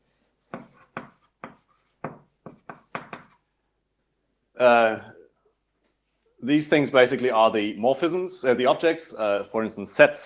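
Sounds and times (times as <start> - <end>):
writing on a board during a mathematics lecture: 0.5 - 3.5
speech: 4.6 - 5.1, 6.4 - 10.2.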